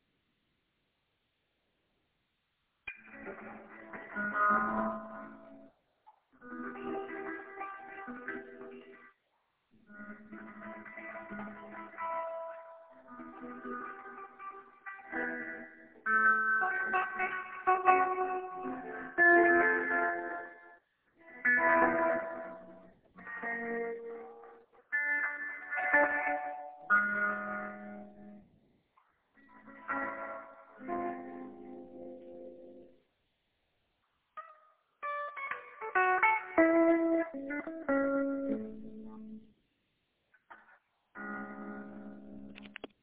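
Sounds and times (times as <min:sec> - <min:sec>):
ambient guitar with jazzy chords: 0:02.9 - 0:05.7, 0:06.4 - 0:09.1, 0:09.8 - 0:28.6, 0:29.4 - 0:33.0, 0:34.4 - 0:39.5, 0:40.5 - 0:43.0.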